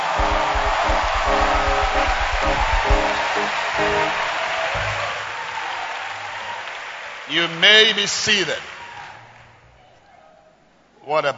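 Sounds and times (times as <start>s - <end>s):
audience hand clapping: 0.0s - 9.1s
speech: 7.3s - 8.7s, 11.1s - 11.3s.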